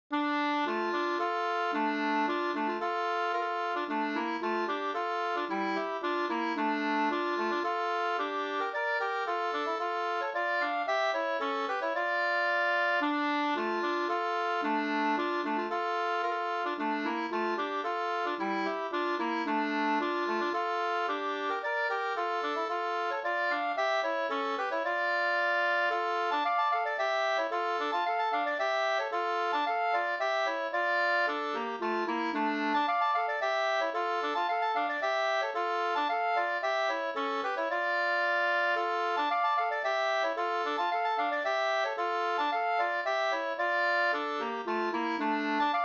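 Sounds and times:
two-part polska folk dance tune: 0.1 - 45.8.

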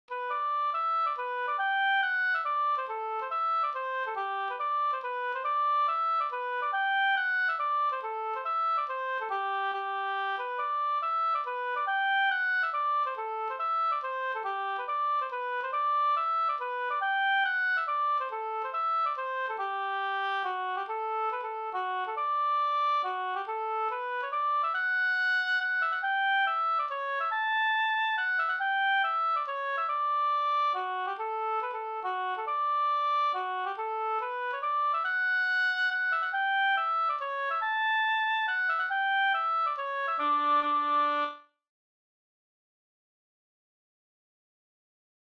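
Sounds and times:
hambo polska folk dance tune: 0.1 - 41.4.

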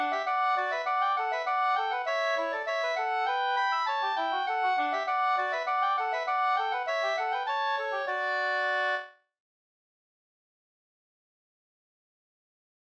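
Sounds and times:
polka: 0.0 - 9.2.

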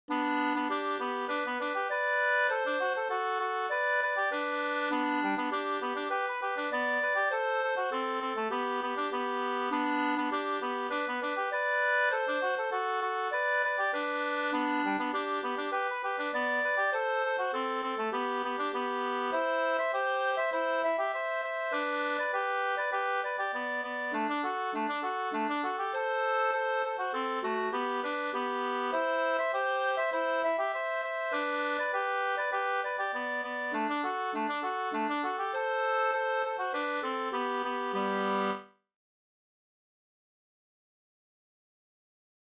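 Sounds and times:
polka music: 0.1 - 38.7.

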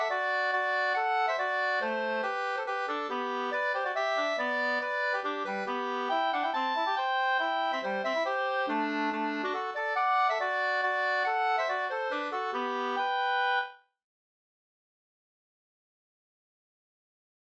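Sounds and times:
mazurka: 0.0 - 13.7.

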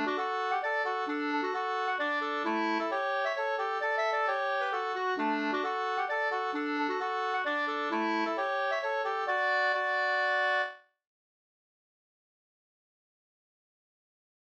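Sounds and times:
hambo polska dance tune: 0.0 - 10.8.

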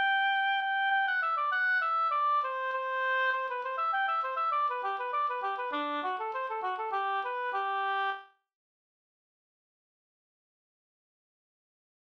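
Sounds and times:
polka music: 0.0 - 8.3.

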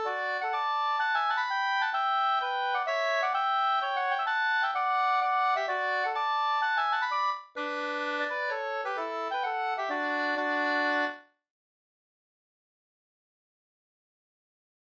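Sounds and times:
polska dance tune: 0.0 - 11.2.

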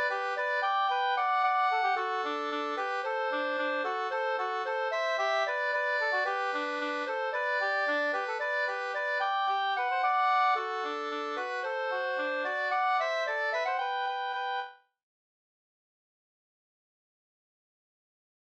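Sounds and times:
polka in D and G major: 0.0 - 14.8.

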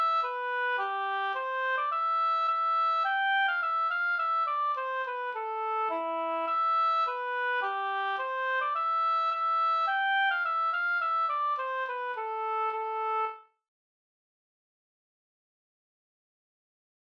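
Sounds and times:
slangpolska folk dance tune: 0.0 - 13.2.

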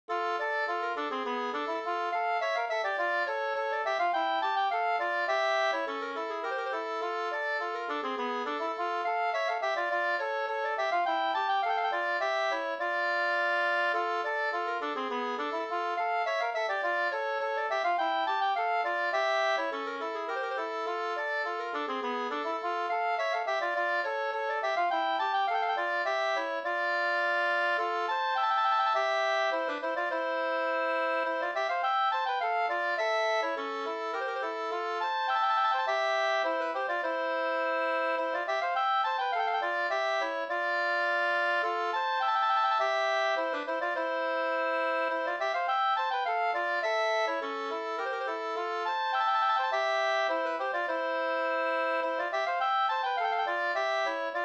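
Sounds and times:
two-part polska dance tune: 0.1 - 54.4.

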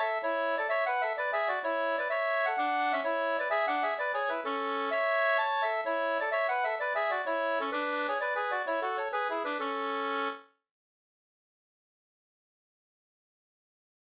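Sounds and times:
trallpolska folk tune: 0.0 - 10.5.

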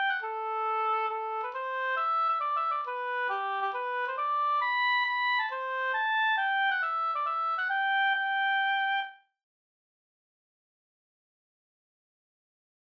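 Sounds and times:
hambo polska folk dance tune: 0.0 - 9.1.

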